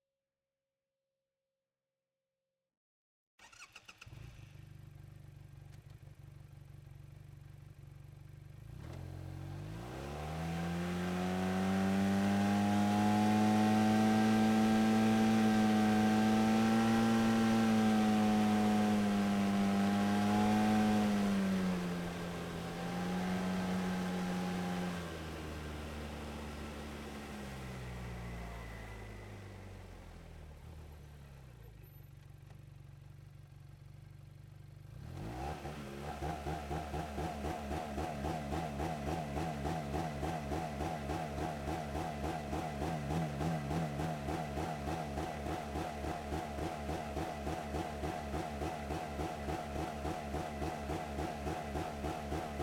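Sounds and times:
Textron Wildcat Sport starting, driving, reversing and stopping: 8.7s - 32.7s, 34.9s - 52.6s.

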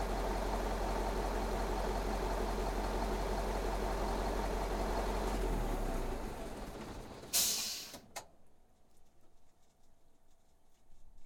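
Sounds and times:
URAL 4320 diesel truck starting, idling and stopping: 0.0s - 8.2s.

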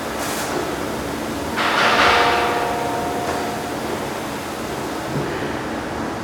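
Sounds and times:
industrial warehouse construction ambience: 0.1s - 6.1s.

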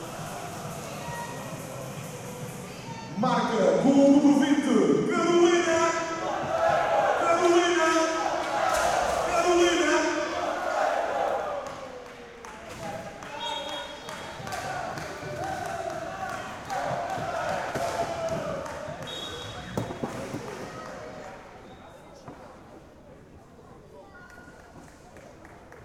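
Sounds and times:
women's league roller hockey match ambience: 0.0s - 25.8s.

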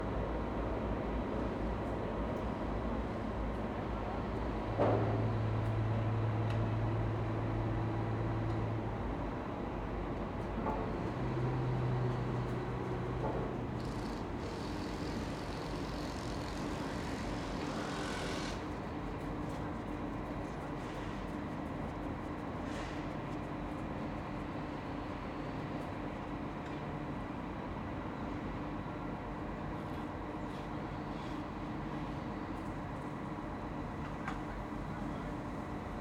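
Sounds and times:
exterior construction ambience: 1.1s - 35.9s
construction crane hoisting at various engine speeds: 13.2s - 18.8s.

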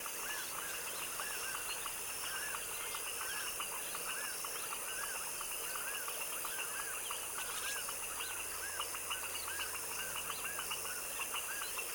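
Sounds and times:
foaming frogs chorus in a tropical wetland swamp at dusk: 0.0s - 11.9s.

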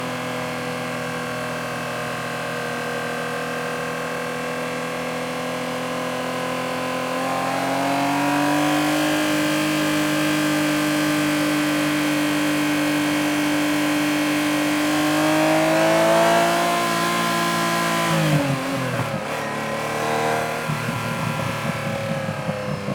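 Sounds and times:
1990 Ferrari Testarossa engine starting and driving at steady RPMs: 0.1s - 22.9s.

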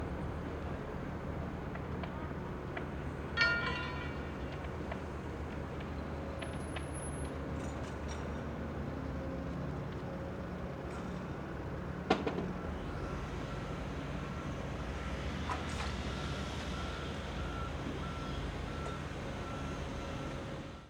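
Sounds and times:
construction engines outdoors: 0.0s - 20.8s
construction clanging: 3.4s - 4.2s.

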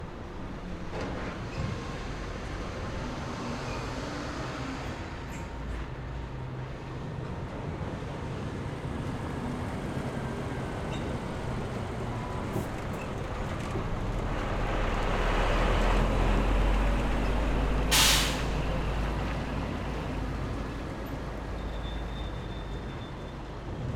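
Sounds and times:
trucks at a dock: 0.0s - 23.9s.

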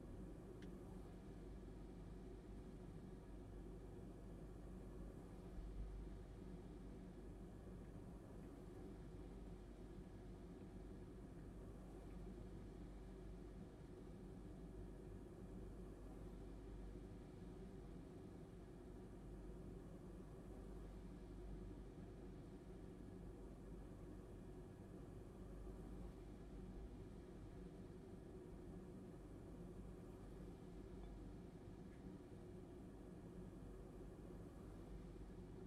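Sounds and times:
air conditioning hum and hiss: 0.0s - 35.6s.

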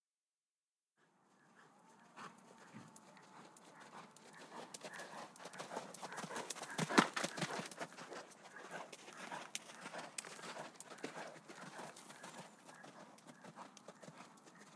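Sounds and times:
horses galloping outdoors on sand: 1.3s - 14.7s.

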